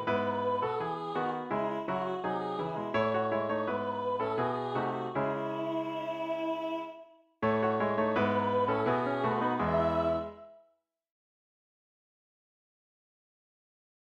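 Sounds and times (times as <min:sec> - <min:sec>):
Christmas carol: 0:00.0 - 0:10.6.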